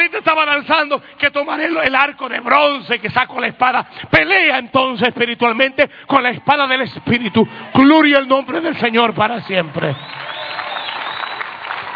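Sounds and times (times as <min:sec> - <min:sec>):
speech: 0:00.1 - 0:10.4
weak, half-hearted audience applause: 0:08.4 - 0:11.9.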